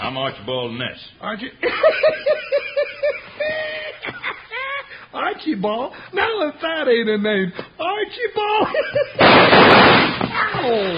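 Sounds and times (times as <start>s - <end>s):
speech: 0.1s - 2.7s, 5.4s - 10.9s
laughter: 1.6s - 5.1s, 8.5s - 9.2s
gunshot: 9.2s - 10.5s.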